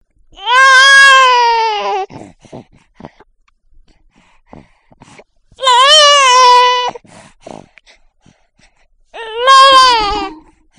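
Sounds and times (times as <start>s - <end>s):
baby: 0.4s - 3.3s, 4.5s - 7.8s, 9.2s - 10.7s.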